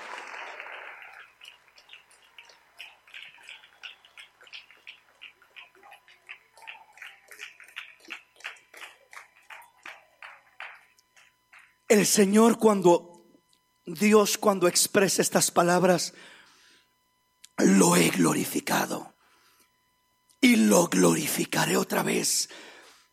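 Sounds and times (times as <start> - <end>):
audience applauding: 0.0 - 11.8
speech: 11.9 - 13.1, 13.9 - 16.4, 18.2 - 19.1, 20.7 - 22.7.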